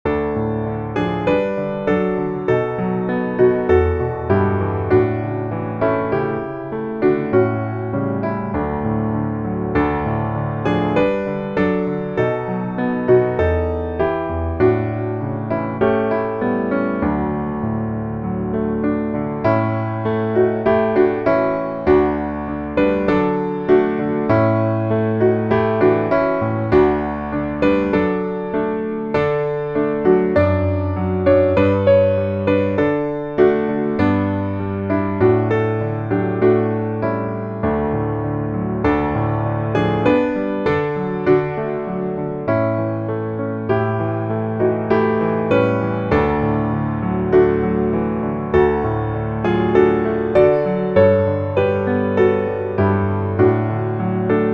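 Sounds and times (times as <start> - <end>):
piano: 0.0 - 54.5.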